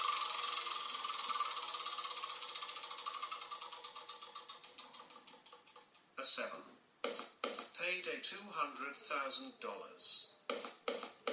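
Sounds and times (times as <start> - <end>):
board game spinner whirring through a spin: 0.0 - 6.0
speech: 6.2 - 7.2, 7.9 - 11.0.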